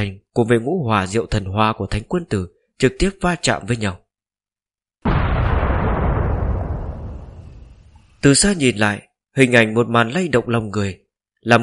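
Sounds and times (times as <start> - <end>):
speech: 0.0 - 4.0, 8.2 - 11.6
deafening explosion: 5.0 - 8.2.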